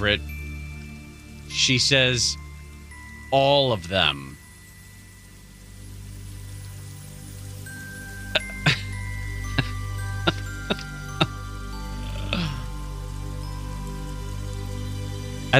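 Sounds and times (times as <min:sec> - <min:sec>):
speech: 0:00.0 - 0:00.4, 0:01.5 - 0:02.4, 0:03.3 - 0:04.4
steady low hum: 0:00.0 - 0:15.5
Reiki timer chime pings: 0:08.0 - 0:13.0.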